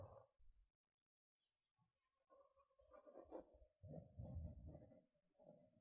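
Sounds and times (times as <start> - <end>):
gentle dull scratching: 2.3 - 5.0.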